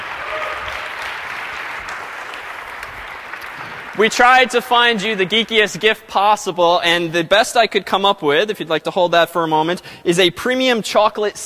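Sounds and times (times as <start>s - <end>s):
audience applause for award recipient: 0.0s - 5.8s
speech: 4.0s - 11.4s.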